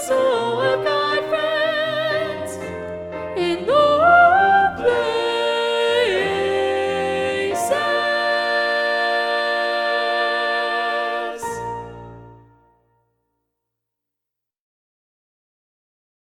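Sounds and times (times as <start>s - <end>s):
soprano singing: 0.0s - 12.6s.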